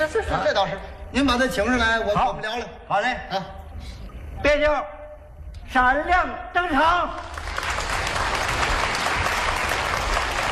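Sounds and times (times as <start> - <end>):
speech: 0.0 - 5.0, 5.7 - 7.4
audience applause: 7.2 - 10.5.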